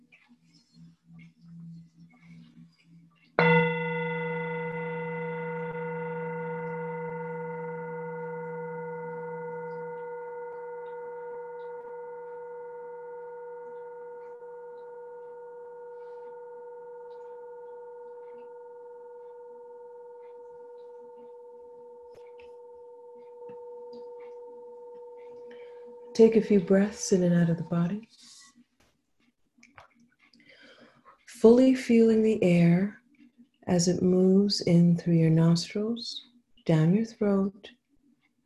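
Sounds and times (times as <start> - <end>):
meditation bell ringing: 0.1 - 28.6
speech: 26.2 - 28.3, 31.4 - 33.0, 33.7 - 37.8.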